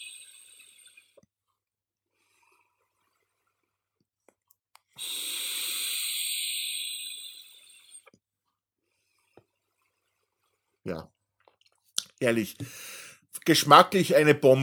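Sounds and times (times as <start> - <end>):
e-cigarette vapour exhale hissing: 0.0 - 1.2, 5.0 - 8.1, 12.6 - 13.3
speech: 10.9 - 11.2, 12.2 - 12.9, 13.5 - 14.6.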